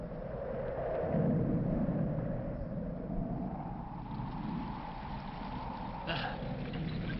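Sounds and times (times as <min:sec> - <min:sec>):
storm wind: 0:00.0 - 0:07.1
storm rain: 0:03.9 - 0:07.1.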